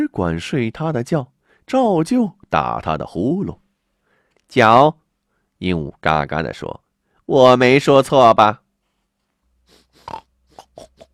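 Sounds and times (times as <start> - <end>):
speech: 0.0 - 3.6, 4.5 - 5.0, 5.6 - 8.6, 10.0 - 10.2
pig grunting and snorting: 10.0 - 11.1.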